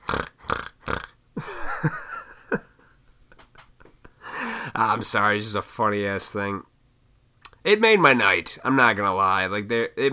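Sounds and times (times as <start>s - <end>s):
woman imitating pig snorts and squealing grunt: 0.0s - 1.2s
speech: 5.0s - 6.7s, 7.6s - 10.1s.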